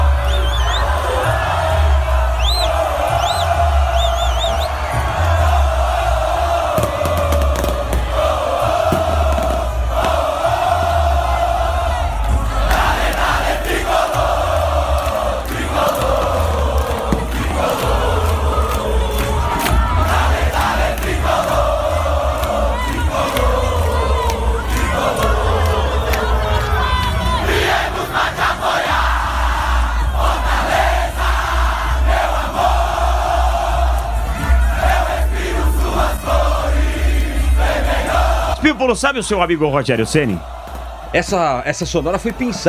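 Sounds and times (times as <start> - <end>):
Fortaleza football fans cheering in stadium: 0.0 - 42.6
speech: 38.8 - 42.6.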